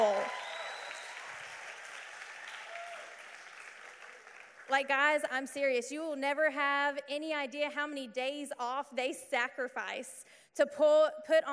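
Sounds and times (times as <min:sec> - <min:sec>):
crowd clapping: 0:00.0 - 0:04.9
speech: 0:04.7 - 0:11.5.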